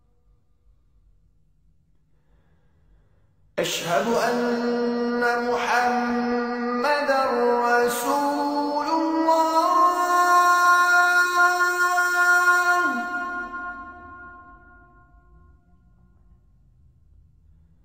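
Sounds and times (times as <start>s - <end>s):
Azan call to prayer: 3.6s - 15.1s.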